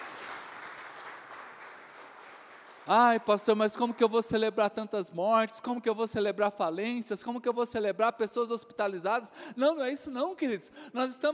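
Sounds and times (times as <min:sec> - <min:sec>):
audience applause: 0:00.0 - 0:03.5
speech: 0:02.9 - 0:11.3.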